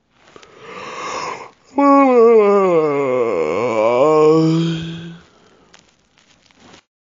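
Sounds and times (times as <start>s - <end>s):
person yawning: 0.4s - 5.5s.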